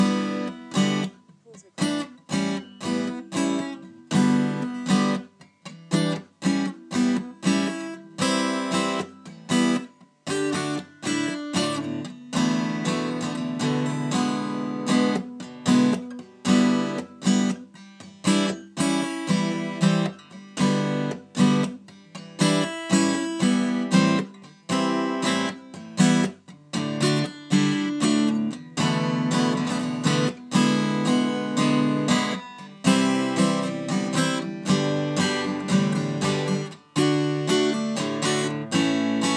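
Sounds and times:
live acoustic guitar playing: 0:00.0 - 0:39.3.

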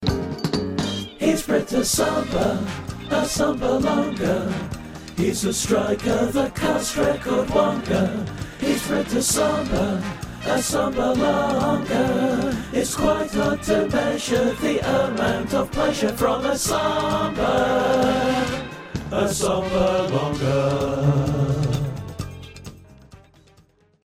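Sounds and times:
song: 0:00.8 - 0:22.6.

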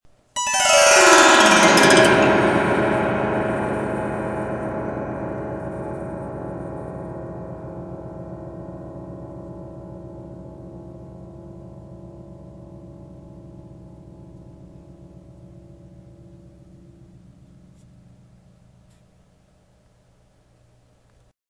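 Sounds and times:
autoharp: 0:00.4 - 0:05.0.

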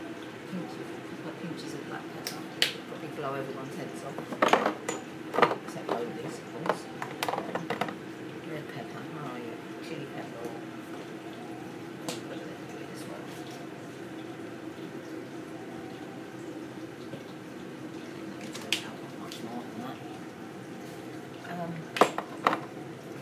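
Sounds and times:
bubbling or sizzling: 0:00.0 - 0:23.2
speech: 0:01.6 - 0:07.5
utensil clinking against a cooking pot stirring peppers and garlic: 0:04.1 - 0:08.0.

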